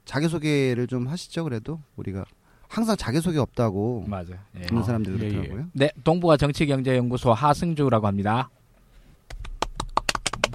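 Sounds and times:
speech: 0:00.1 - 0:08.6
hand clapping: 0:09.3 - 0:10.5.

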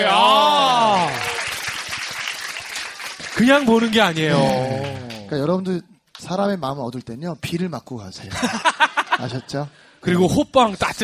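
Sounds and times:
audience applause: 0:00.0 - 0:05.3
speech: 0:03.4 - 0:11.0
laughter: 0:08.3 - 0:09.5.

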